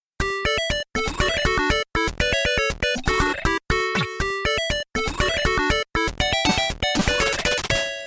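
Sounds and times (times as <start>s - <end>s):
video game tune: 0.2s - 8.0s.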